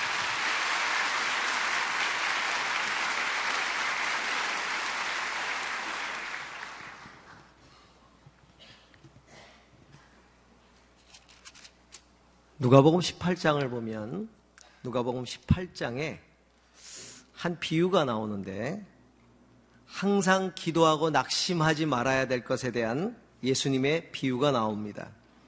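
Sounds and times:
audience applause: 0.0 - 7.5
speech: 12.6 - 18.9, 19.9 - 25.2.

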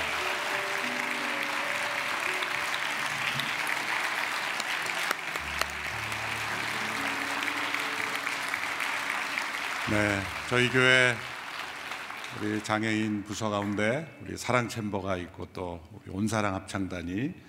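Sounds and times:
audience applause for a choir: 0.0 - 13.8
speech: 9.9 - 11.3, 12.4 - 17.4.

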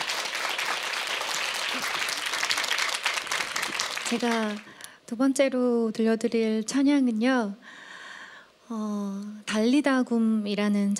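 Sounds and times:
audience applause: 0.0 - 4.8
speech: 4.1 - 7.6, 8.7 - 10.9.

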